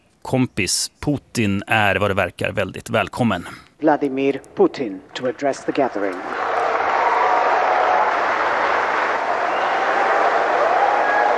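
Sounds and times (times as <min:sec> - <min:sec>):
speech: 0:00.3 - 0:06.4
audience applauding Vladimir Putin at a BRICS business forum: 0:05.6 - 0:11.3.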